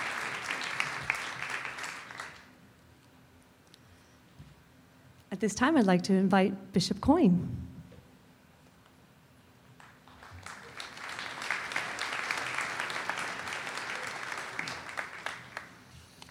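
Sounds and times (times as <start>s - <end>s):
audience clapping: 0.0s - 2.6s, 9.8s - 16.2s
speech: 5.3s - 7.7s.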